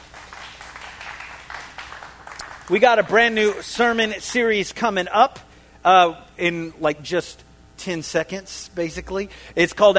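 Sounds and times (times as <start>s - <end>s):
congregation clapping hands in church: 0.0s - 4.4s
speech: 2.7s - 9.9s.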